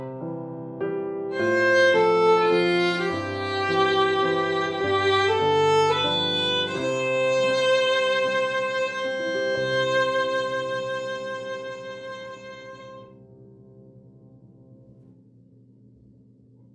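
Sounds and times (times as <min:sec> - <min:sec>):
beginner violin accompaniment at 105 BPM: 0:01.3 - 0:13.2.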